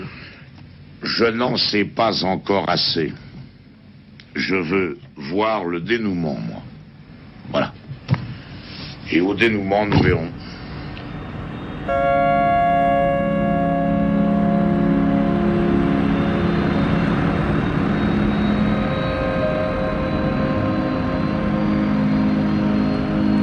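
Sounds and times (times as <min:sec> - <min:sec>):
airplane taking off from Villacoublay military airport: 0:00.0 - 0:23.4
speech: 0:01.0 - 0:03.2, 0:04.4 - 0:06.6, 0:07.5 - 0:07.8, 0:09.1 - 0:10.6, 0:11.9 - 0:12.3.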